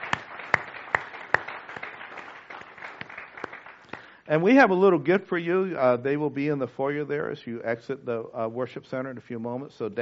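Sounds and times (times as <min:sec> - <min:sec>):
audience applause for dads: 0:00.0 - 0:04.2
speech: 0:04.3 - 0:09.9.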